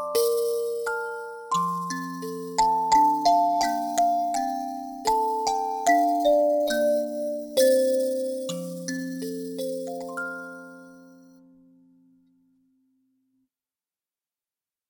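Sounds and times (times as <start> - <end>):
Irish lullaby on kalimba: 0.0 - 11.6.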